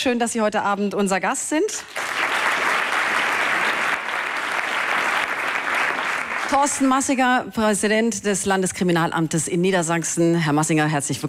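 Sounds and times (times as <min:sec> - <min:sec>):
speech: 0:00.0 - 0:02.2, 0:06.5 - 0:11.2
studio audience applauding at an evening talk show: 0:01.8 - 0:06.9.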